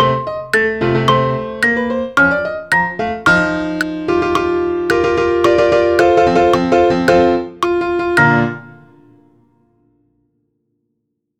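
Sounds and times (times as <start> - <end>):
piano xylophone click: 0.0 - 9.0.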